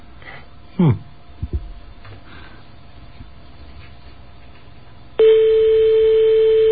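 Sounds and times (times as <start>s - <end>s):
European telephone ringing tone: 5.2s - 6.7s.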